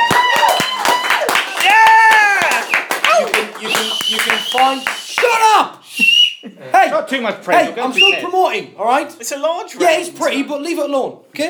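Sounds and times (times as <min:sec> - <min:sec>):
hand claps: 0:00.0 - 0:05.4
people cheering and whooping: 0:00.0 - 0:05.6
speech: 0:07.1 - 0:11.4.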